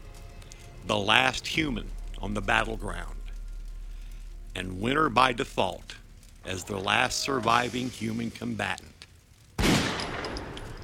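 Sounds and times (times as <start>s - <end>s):
speech: 0.9s - 3.2s, 4.5s - 8.9s
88mm round being fired: 9.6s - 10.8s.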